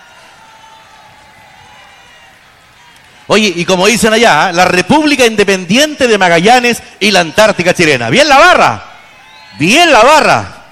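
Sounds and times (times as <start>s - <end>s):
large crowd applauding and cheering: 0.0s - 4.1s, 8.9s - 10.0s
speech: 3.3s - 8.9s, 9.5s - 10.6s.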